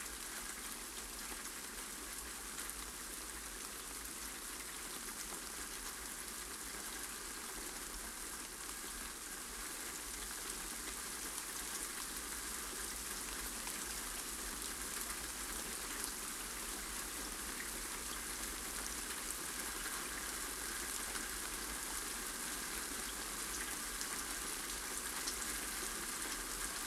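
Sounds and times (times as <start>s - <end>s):
spring rain: 0.0s - 26.8s.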